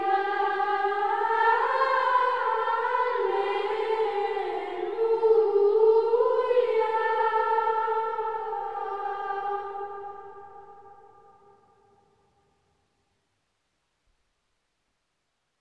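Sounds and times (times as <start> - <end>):
Gregorian plainchant: 0.0 - 12.5.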